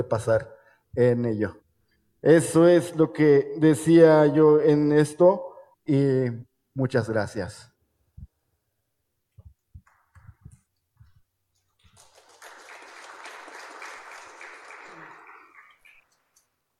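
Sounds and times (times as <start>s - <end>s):
speech: 0.0s - 1.6s, 2.2s - 7.7s
applause for fellow speakers: 11.7s - 16.2s.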